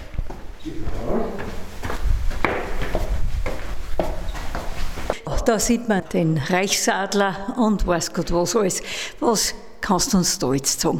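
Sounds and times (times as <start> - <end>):
footsteps walking up the stairs of the Kammerhofmuseum in Gmunden: 0.0 - 5.2
speech: 5.5 - 10.9.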